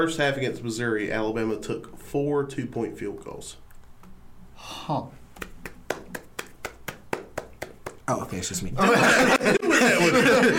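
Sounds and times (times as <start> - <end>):
speech: 0.0 - 3.6, 4.6 - 5.2, 8.1 - 10.5
hands clapping: 5.4 - 8.2
laughter: 8.8 - 10.5.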